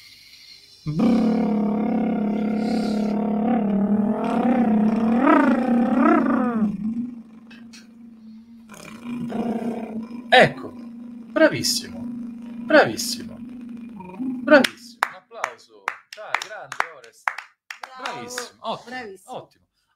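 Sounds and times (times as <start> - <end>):
speech: 0.8 - 1.6, 11.6 - 12.0, 12.7 - 13.3, 14.5 - 14.7
lip trill vocal exercise: 0.9 - 15.1.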